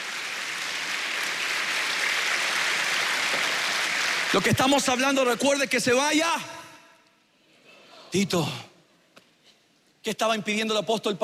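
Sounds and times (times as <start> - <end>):
crowd applause: 0.0 - 4.6
speech: 4.3 - 6.6, 8.1 - 8.7, 10.0 - 11.2.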